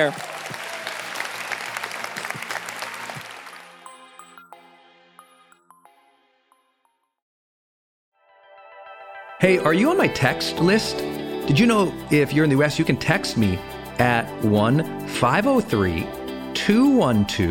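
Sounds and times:
speech: 0:00.0 - 0:00.2, 0:09.4 - 0:17.4
audience applause: 0:00.0 - 0:03.8.

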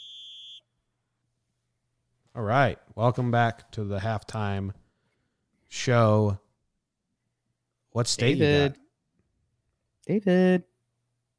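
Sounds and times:
halftime whistle blast: 0:00.0 - 0:00.7
speech: 0:02.4 - 0:04.8, 0:05.7 - 0:06.4, 0:07.9 - 0:08.8, 0:10.1 - 0:10.7.

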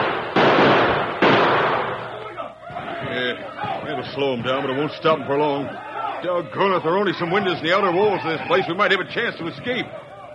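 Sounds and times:
gunfire bombardment: 0:00.0 - 0:02.3
speech: 0:04.0 - 0:10.1.

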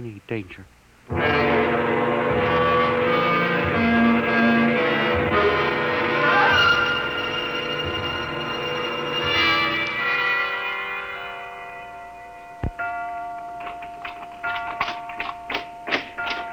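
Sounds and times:
clock chime with resonant bell tone: 0:01.1 - 0:16.5.

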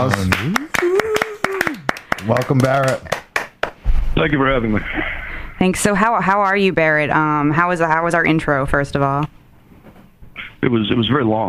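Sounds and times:
speech: 0:00.0 - 0:00.7, 0:02.3 - 0:03.2, 0:04.2 - 0:09.4, 0:10.6 - 0:11.4
scattered hand claps: 0:00.0 - 0:03.8
voice humming or cheering: 0:00.3 - 0:02.0.

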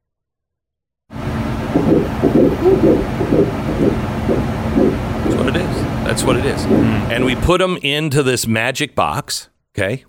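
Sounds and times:
static hiss: 0:01.2 - 0:07.4
fetal heartbeat on an ultrasound monitor: 0:01.3 - 0:07.3
speech: 0:06.2 - 0:10.0.

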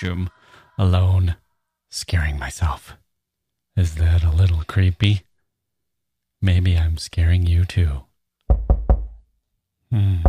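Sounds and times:
speech: 0:00.0 - 0:03.0, 0:03.8 - 0:05.3, 0:06.4 - 0:08.1, 0:09.9 - 0:10.2
heavy knocks: 0:08.5 - 0:09.2.

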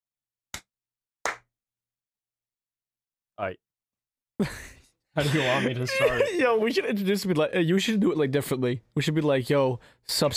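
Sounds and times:
hand claps: 0:00.5 - 0:01.5
speech: 0:03.4 - 0:03.6, 0:04.4 - 0:10.3
laughter: 0:04.4 - 0:06.9.

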